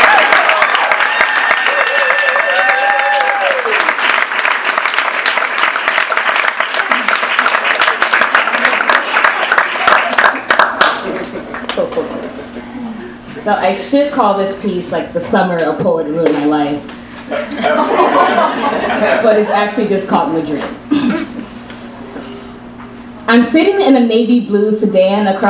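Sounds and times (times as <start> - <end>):
audience applause welcoming writers at an evening reading event: 0.0 - 11.9
laughter: 7.8 - 13.2, 17.3 - 19.7
speech: 13.5 - 20.8, 23.3 - 25.4.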